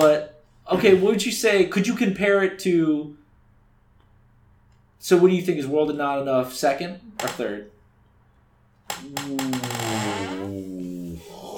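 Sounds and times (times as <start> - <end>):
speech: 0.7 - 3.2, 5.0 - 7.7, 9.0 - 10.2
office swivel chair creaking: 7.2 - 7.6, 8.9 - 11.0.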